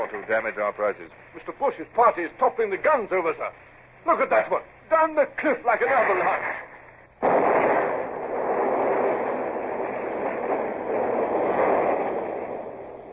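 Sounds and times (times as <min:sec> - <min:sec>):
speech: 0:00.1 - 0:07.4
shore battery gunpowder magazine blowing up at Lanza: 0:07.2 - 0:13.1.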